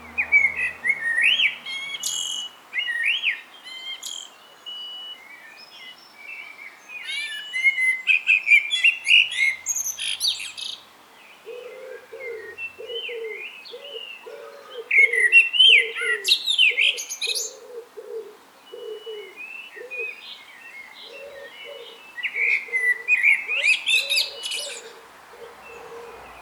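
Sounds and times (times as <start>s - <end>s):
another bird giving low repeated hooting notes: 0.0s - 1.9s
common blackbird song: 0.0s - 26.4s.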